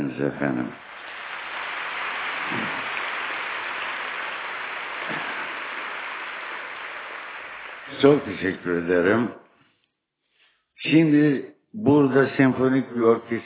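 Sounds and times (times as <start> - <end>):
speech: 0.2 - 0.8, 8.0 - 9.4, 10.8 - 13.4
audience applause: 0.7 - 9.0.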